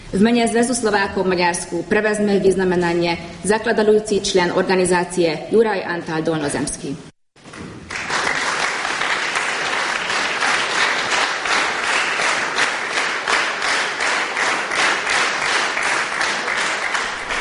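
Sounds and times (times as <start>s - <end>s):
speech: 0.1s - 7.1s
large crowd applause: 7.9s - 17.4s.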